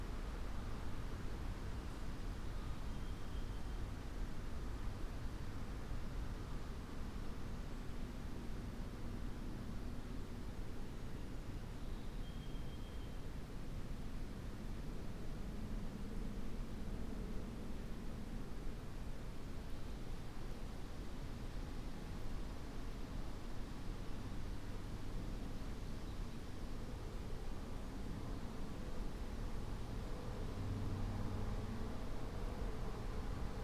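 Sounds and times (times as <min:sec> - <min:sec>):
breeze through an oak, hickory and maple stand on a ridge: 0:00.0 - 0:33.6
faint high chirps: 0:02.9 - 0:03.9, 0:11.8 - 0:13.2.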